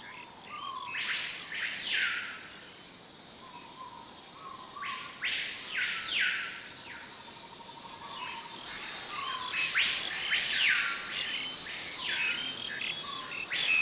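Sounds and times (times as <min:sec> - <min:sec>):
green jungle-like ambience: 0:00.0 - 0:13.8.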